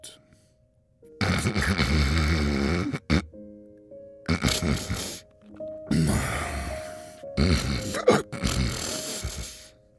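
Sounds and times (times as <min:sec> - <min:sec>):
voice imitating a wolf snoring loudly: 0:01.2 - 0:03.3, 0:04.3 - 0:05.2, 0:05.9 - 0:09.6.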